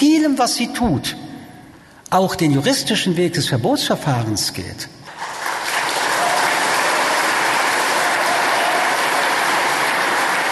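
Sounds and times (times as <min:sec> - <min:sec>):
speech: 0:00.0 - 0:01.2, 0:02.1 - 0:05.0
thunderous applause: 0:05.2 - 0:10.5.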